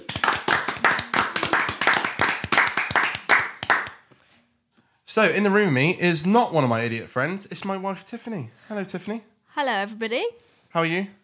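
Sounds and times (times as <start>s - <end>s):
hand clap: 0.0s - 4.2s
speech: 5.2s - 11.2s.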